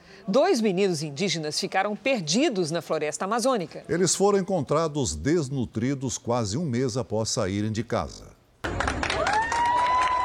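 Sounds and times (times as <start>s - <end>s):
speech: 0.2s - 8.3s
crowd applause: 8.6s - 10.2s.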